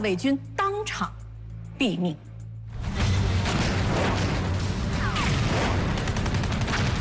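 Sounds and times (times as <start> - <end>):
speech: 0.0 - 1.2, 1.8 - 2.3
continuous gunfire: 3.0 - 7.0.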